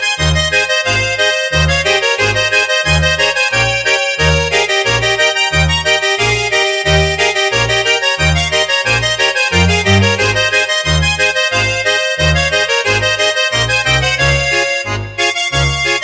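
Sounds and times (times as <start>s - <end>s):
bass note in A flat: 0.2s - 15.9s.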